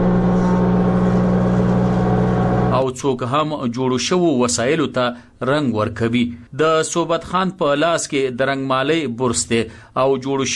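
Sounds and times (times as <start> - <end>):
woodworking machines cutting and planing wood in a furniture workshop: 0.0 - 2.8
speech: 2.8 - 10.5.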